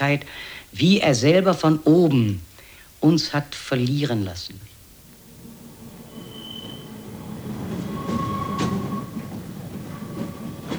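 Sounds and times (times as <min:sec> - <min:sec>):
speech: 0:00.0 - 0:04.7
tram running on rails: 0:03.8 - 0:10.7.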